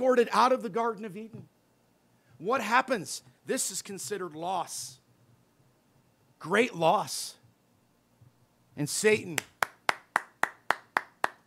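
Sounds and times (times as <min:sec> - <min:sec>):
speech: 0:00.0 - 0:01.5, 0:02.4 - 0:05.0, 0:06.4 - 0:07.4, 0:08.8 - 0:09.5
hands clapping: 0:09.3 - 0:11.4.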